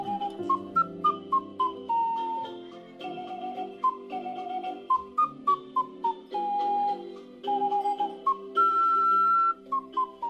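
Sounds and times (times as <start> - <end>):
ocarina playing a gentle melody: 0.0 - 10.2
soft steady accompaniment: 0.0 - 10.2.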